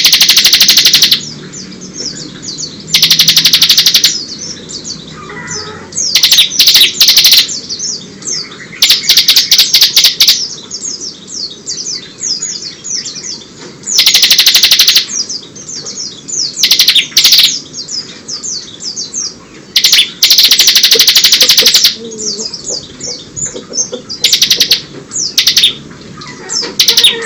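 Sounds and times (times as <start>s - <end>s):
bird song with high buzzy trills and downslurred whistles: 0.0s - 27.2s.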